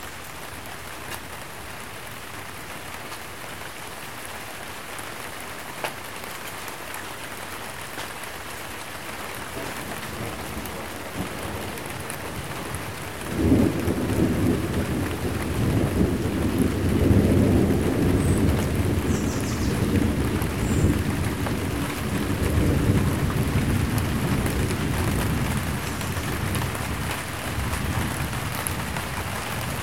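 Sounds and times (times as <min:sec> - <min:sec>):
light rain: 0:00.0 - 0:29.8
thunder: 0:09.5 - 0:29.8.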